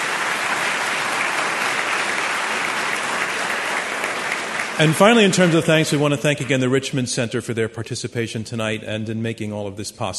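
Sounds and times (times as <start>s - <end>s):
audience applause: 0.0s - 6.7s
speech: 4.8s - 10.1s.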